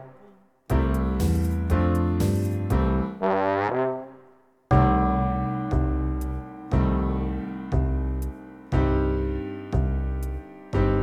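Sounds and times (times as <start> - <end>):
musical accompaniment: 0.7 - 3.2, 4.7 - 11.0.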